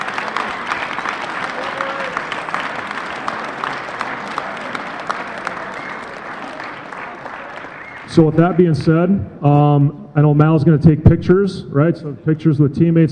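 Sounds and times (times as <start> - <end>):
audience applause: 0.0 - 8.9
speech: 8.2 - 13.1.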